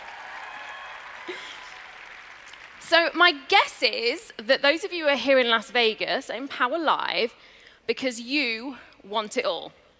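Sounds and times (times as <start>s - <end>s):
crowd applauding: 0.0s - 2.9s
speech: 2.9s - 9.8s.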